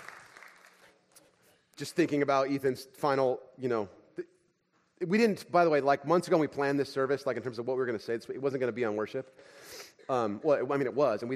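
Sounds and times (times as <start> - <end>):
faint audience clapping: 0.0 - 1.4
speech: 1.8 - 4.3, 5.0 - 11.3.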